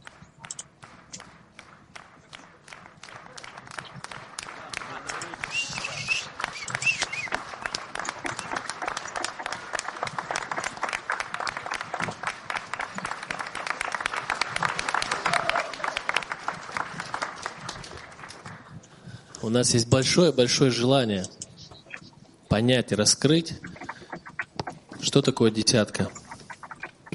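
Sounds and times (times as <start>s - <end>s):
audience applause: 0.8s - 18.7s
speech: 19.5s - 21.4s, 22.6s - 23.7s, 25.2s - 26.2s.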